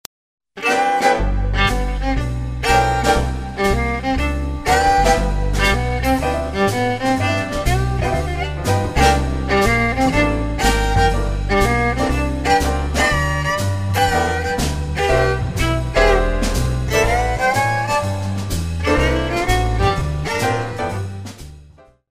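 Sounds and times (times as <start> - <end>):
blues music: 0.6 - 22.0.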